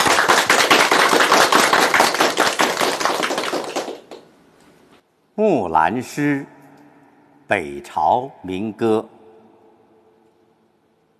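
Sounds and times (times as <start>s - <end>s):
crowd clapping: 0.0s - 4.3s
speech: 5.4s - 6.6s, 7.5s - 9.2s.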